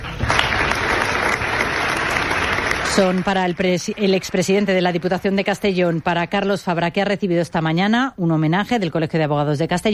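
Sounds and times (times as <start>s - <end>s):
applause: 0.0s - 6.5s
speech: 2.9s - 9.9s.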